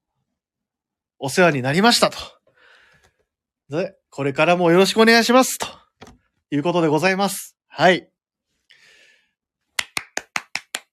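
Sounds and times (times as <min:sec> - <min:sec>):
speech: 0:01.2 - 0:02.4, 0:03.7 - 0:05.8, 0:06.5 - 0:08.1
one person clapping hands: 0:09.7 - 0:10.9.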